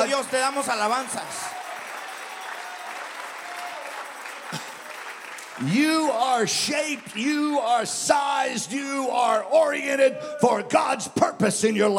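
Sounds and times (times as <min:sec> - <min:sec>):
church congregation applause: 0:00.0 - 0:08.5
speech: 0:00.2 - 0:01.6, 0:05.6 - 0:11.9.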